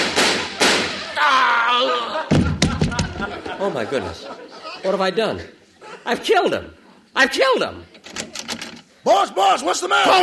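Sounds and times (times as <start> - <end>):
staged gunshot sound effects in a radio comedy sketch: 0.0 - 1.0
laughter: 0.2 - 6.5
speech: 3.6 - 8.3, 9.0 - 10.2.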